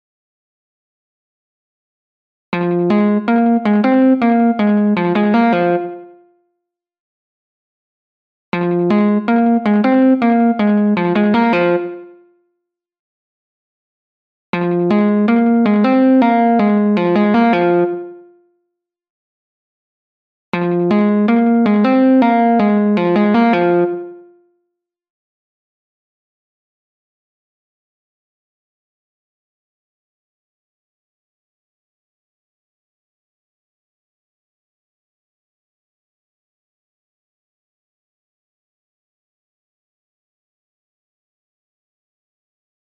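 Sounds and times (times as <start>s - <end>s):
guitar: 2.5s - 6.3s, 8.6s - 12.3s, 14.5s - 18.4s, 20.6s - 24.4s.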